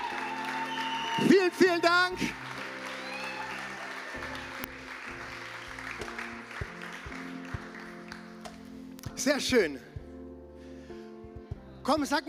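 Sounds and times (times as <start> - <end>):
large audience applause: 0.0 - 8.4
speech: 1.2 - 2.6, 9.2 - 9.9, 11.9 - 12.2.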